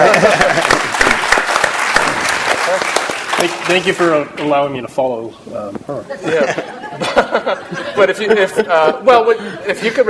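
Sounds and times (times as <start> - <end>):
laughter: 0.0 - 1.3, 6.1 - 10.0
audience applauding: 0.0 - 4.2
speech: 3.7 - 10.0.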